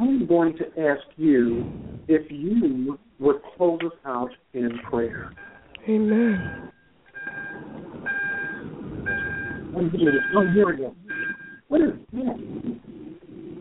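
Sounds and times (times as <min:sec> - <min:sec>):
speech: 0:00.3 - 0:06.7, 0:09.8 - 0:13.0
car warning chime: 0:05.4 - 0:11.6.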